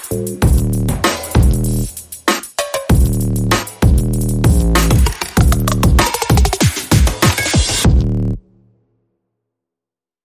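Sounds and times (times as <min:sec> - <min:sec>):
bass: 0:00.0 - 0:02.2, 0:02.9 - 0:08.4
drums: 0:00.0 - 0:08.1.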